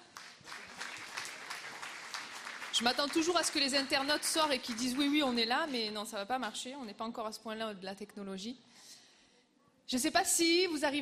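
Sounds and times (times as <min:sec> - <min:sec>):
audience applause: 0:00.0 - 0:05.3
speech: 0:02.8 - 0:08.8, 0:09.9 - 0:11.0.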